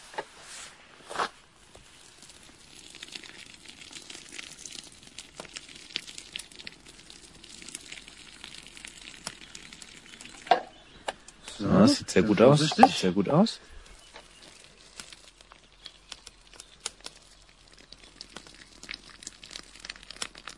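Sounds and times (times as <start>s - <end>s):
pasta water being poured off from pot: 1.6s - 20.5s
speech: 11.8s - 13.8s.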